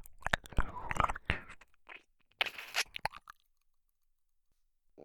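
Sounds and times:
ASMR ear licking sounds: 0:00.0 - 0:03.4.

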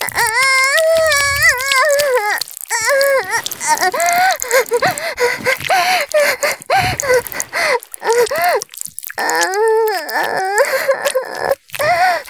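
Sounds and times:
urination: 0:00.0 - 0:12.2.

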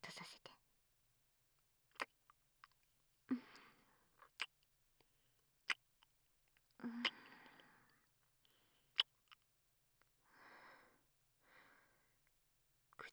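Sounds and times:
soft fluffy kissing: 0:01.9 - 0:02.7, 0:05.7 - 0:05.9, 0:06.9 - 0:07.6, 0:08.9 - 0:09.5.

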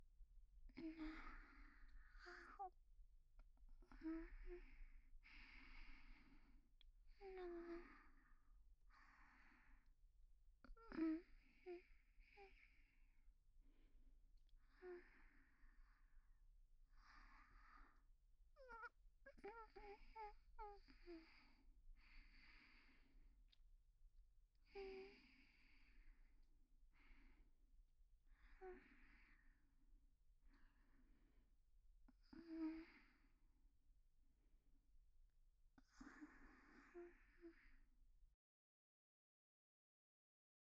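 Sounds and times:
woman breathing calmly in sleep beside her boyfriend: 0:00.8 - 0:02.7, 0:03.8 - 0:09.9, 0:10.9 - 0:13.0, 0:14.6 - 0:23.6, 0:24.7 - 0:26.3, 0:28.3 - 0:29.7, 0:32.3 - 0:33.4, 0:35.8 - 0:37.9.

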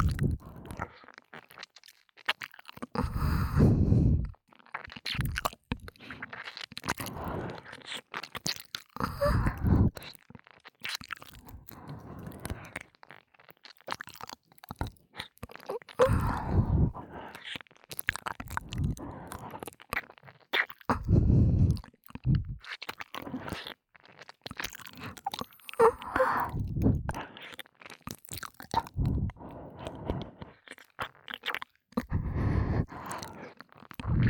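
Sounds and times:
ASMR ear licking sounds: 0:00.0 - 0:34.2
ASMR breathy sighs: 0:03.0 - 0:04.4, 0:05.8 - 0:06.4, 0:07.0 - 0:07.9, 0:09.0 - 0:10.1, 0:11.4 - 0:12.9, 0:15.7 - 0:17.6, 0:18.5 - 0:19.6, 0:20.9 - 0:22.6, 0:23.2 - 0:23.7, 0:24.9 - 0:27.6, 0:28.8 - 0:30.7, 0:32.0 - 0:34.2.

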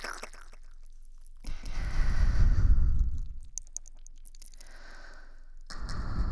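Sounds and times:
echoing licking sounds: 0:01.4 - 0:06.2.

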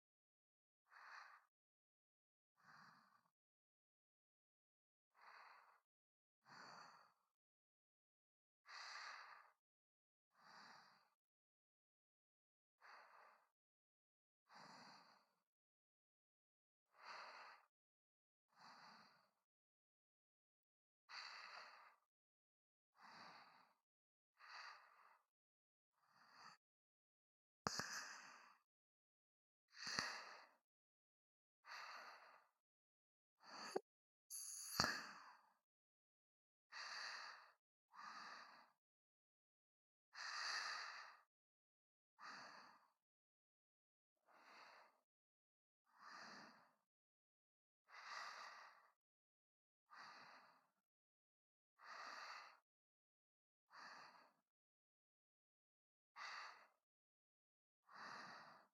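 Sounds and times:
person breathing in sleep: 0:00.9 - 0:01.5, 0:02.6 - 0:03.3, 0:05.2 - 0:05.8, 0:06.4 - 0:07.2, 0:08.7 - 0:09.6, 0:10.4 - 0:11.2, 0:12.8 - 0:13.5, 0:14.5 - 0:15.3, 0:16.9 - 0:17.7, 0:18.5 - 0:19.3, 0:21.2 - 0:22.0, 0:23.0 - 0:23.8, 0:24.4 - 0:25.2, 0:27.7 - 0:28.6, 0:29.8 - 0:30.6, 0:31.6 - 0:32.5, 0:33.4 - 0:35.5, 0:36.8 - 0:38.8, 0:40.2 - 0:41.3, 0:42.2 - 0:42.9, 0:44.3 - 0:45.0, 0:46.0 - 0:46.7, 0:47.9 - 0:49.0, 0:50.0 - 0:50.7, 0:51.8 - 0:52.6, 0:53.8 - 0:54.4, 0:57.9 - 0:58.7.

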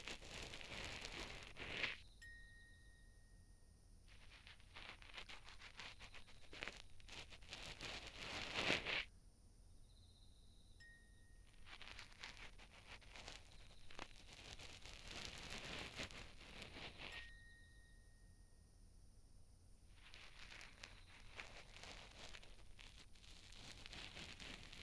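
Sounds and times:
cotton swab asmr: 0:00.0 - 0:02.0, 0:04.1 - 0:09.1, 0:11.5 - 0:17.2, 0:19.9 - 0:24.8.

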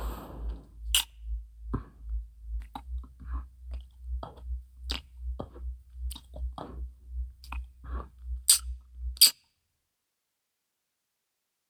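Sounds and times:
looped ASMR licking mouth sounds: 0:00.5 - 0:09.4.

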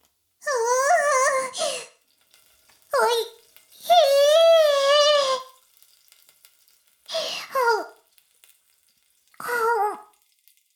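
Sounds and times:
oral sex sounds: 0:00.4 - 0:02.0, 0:02.9 - 0:05.5, 0:07.1 - 0:08.0, 0:09.4 - 0:10.1.

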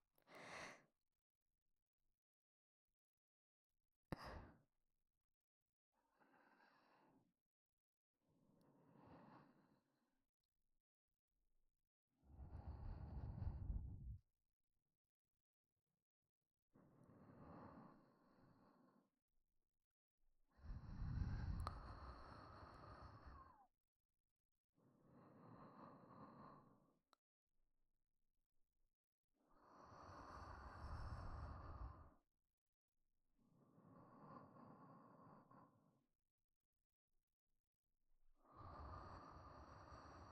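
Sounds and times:
person breathing in sleep: 0:00.3 - 0:00.9, 0:04.2 - 0:04.6, 0:06.2 - 0:07.2, 0:12.3 - 0:14.2, 0:20.6 - 0:23.7, 0:25.0 - 0:26.9, 0:29.5 - 0:32.2, 0:33.6 - 0:35.9, 0:38.4 - 0:40.2.

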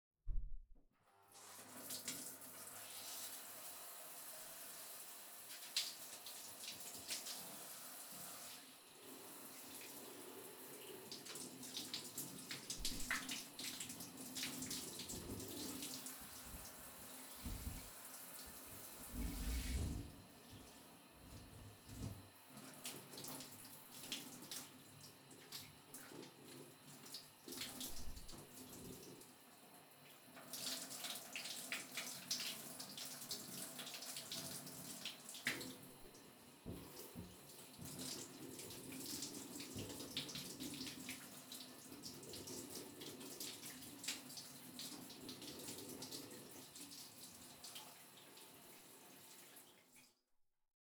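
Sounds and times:
shower rinsing hair: 0:01.4 - 0:29.4, 0:30.1 - 0:49.8.

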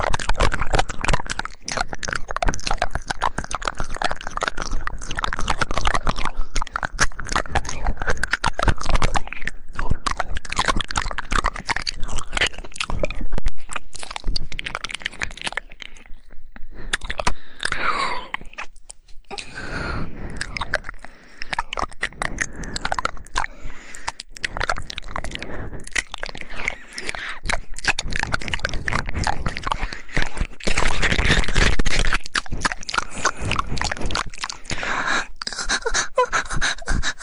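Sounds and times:
saliva squelching mouth sounds: 0:00.0 - 0:37.2
woman moaning: 0:35.6 - 0:37.1.

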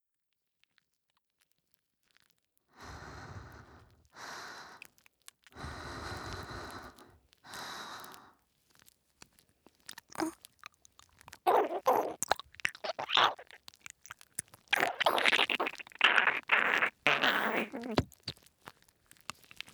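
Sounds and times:
hard ear licking: 0:05.5 - 0:08.3, 0:09.7 - 0:19.7.

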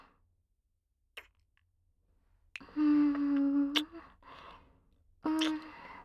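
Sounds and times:
sweet ear licking sounds: 0:02.6 - 0:04.5, 0:05.3 - 0:05.9.

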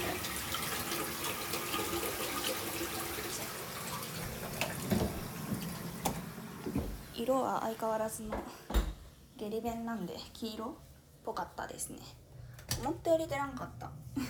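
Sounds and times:
toilet flushing: 0:00.0 - 0:07.2
speech: 0:07.2 - 0:08.6, 0:09.4 - 0:12.2, 0:12.8 - 0:14.2.

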